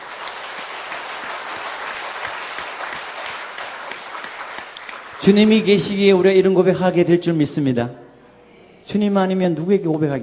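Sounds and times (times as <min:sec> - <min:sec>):
audience applause: 0:00.0 - 0:06.0
speech: 0:05.2 - 0:08.0, 0:08.9 - 0:10.2.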